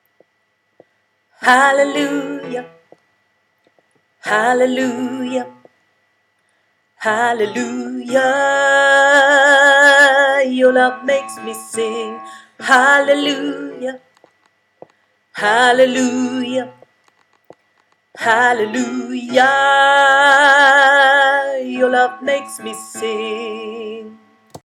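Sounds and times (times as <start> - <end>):
tenor singing: 1.4 - 2.8, 4.2 - 5.7, 7.0 - 14.1, 15.4 - 16.8, 18.2 - 24.4.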